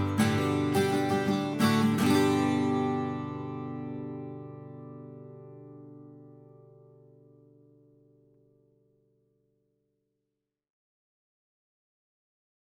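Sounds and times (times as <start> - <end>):
raw guitar strumming: 0.0 - 8.6.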